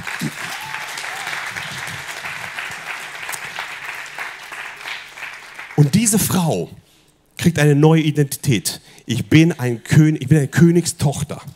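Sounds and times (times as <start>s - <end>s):
audience applause: 0.0s - 6.2s
faint voices and cheers: 0.2s - 2.1s
speech: 5.8s - 11.5s.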